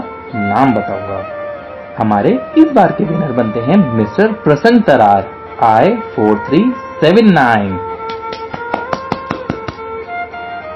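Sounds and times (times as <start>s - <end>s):
speech: 0.3s - 1.4s, 2.0s - 7.9s
hand clapping: 8.0s - 10.0s.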